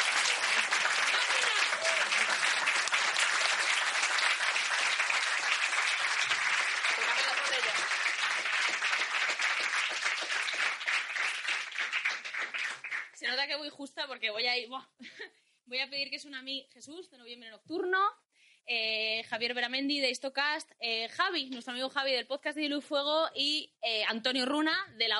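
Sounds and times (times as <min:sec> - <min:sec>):
audience applause: 0:00.0 - 0:13.2
speech: 0:13.4 - 0:25.1.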